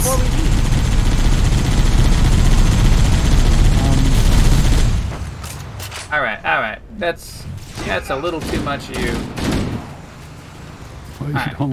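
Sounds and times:
sniper gunfire in a video game: 0:00.0 - 0:05.4, 0:07.7 - 0:10.1
speech: 0:07.0 - 0:09.5, 0:11.3 - 0:11.7.

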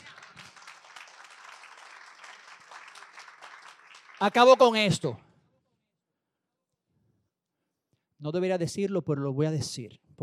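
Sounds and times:
audience applause: 0:00.0 - 0:04.8
speech: 0:04.2 - 0:05.2, 0:08.2 - 0:10.2.

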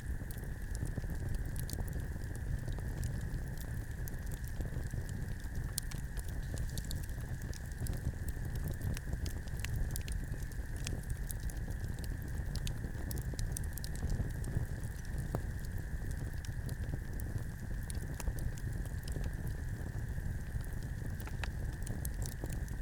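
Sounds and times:
late-night campfire at Medicine Lake burning and crackling: 0:00.0 - 0:22.8.

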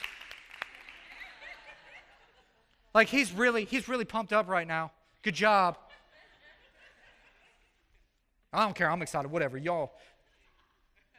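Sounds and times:
golf clap: 0:00.0 - 0:01.0
people chuckling: 0:01.0 - 0:02.9, 0:05.8 - 0:08.3, 0:10.2 - 0:11.1
speech: 0:03.0 - 0:05.8, 0:08.5 - 0:10.1.

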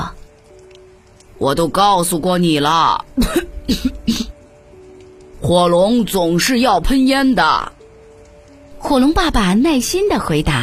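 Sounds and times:
speech: 0:01.4 - 0:04.2, 0:05.4 - 0:07.7, 0:08.8 - 0:10.6
coughing: 0:03.2 - 0:04.4.

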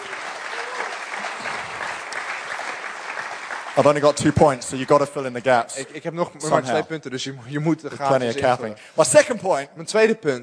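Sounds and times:
audience applauding: 0:00.0 - 0:05.6
speech: 0:03.8 - 0:10.4.

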